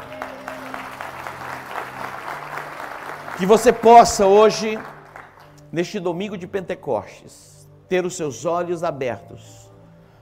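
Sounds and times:
audience applauding: 0:00.0 - 0:05.6
speech: 0:03.4 - 0:04.9, 0:05.7 - 0:09.7.

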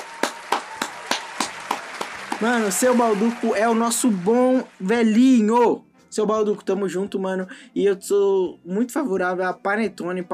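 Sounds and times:
hand clapping: 0:00.0 - 0:05.8
speech: 0:02.4 - 0:10.3.

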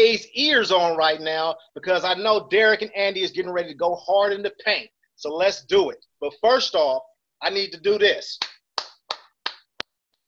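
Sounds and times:
speech: 0:00.0 - 0:08.6
hands clapping: 0:08.4 - 0:10.0.

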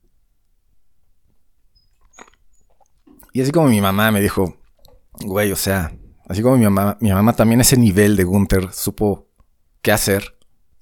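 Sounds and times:
person sipping a drink of water: 0:01.8 - 0:03.4, 0:04.6 - 0:05.3
speech: 0:03.4 - 0:04.6, 0:05.2 - 0:10.8.

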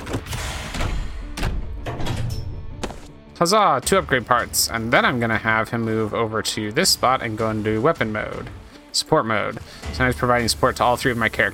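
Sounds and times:
door-like slams of a supply crate in a video game: 0:00.0 - 0:03.1
robot opening a supply crate in a video game with heavy mechanical thuds: 0:00.0 - 0:03.2
speech: 0:03.4 - 0:11.5.

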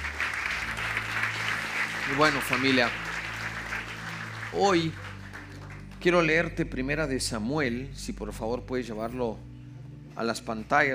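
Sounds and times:
audience applause: 0:00.0 - 0:06.3
speech: 0:02.1 - 0:03.0, 0:04.5 - 0:05.0, 0:06.0 - 0:09.5, 0:10.2 - 0:10.9.

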